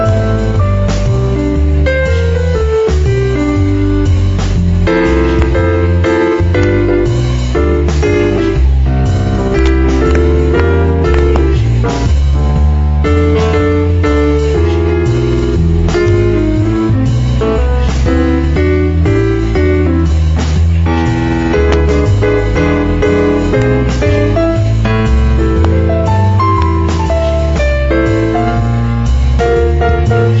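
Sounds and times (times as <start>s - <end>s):
bass in a trio: 0.0s - 30.3s
drums in a trio: 0.0s - 30.3s
piano in a trio: 0.0s - 30.3s.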